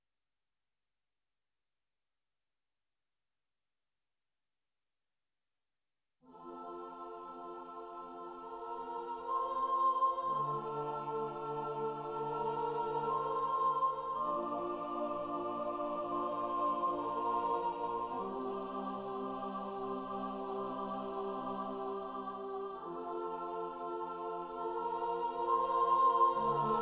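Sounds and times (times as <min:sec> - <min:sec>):
choir singing: 0:06.3 - 0:26.8.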